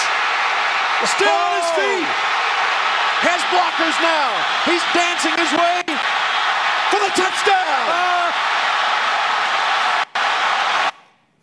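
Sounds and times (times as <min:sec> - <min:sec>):
stadium crowd roaring after touchdown: 0:00.0 - 0:11.2
speech: 0:01.0 - 0:02.4, 0:03.2 - 0:05.9, 0:06.9 - 0:08.5.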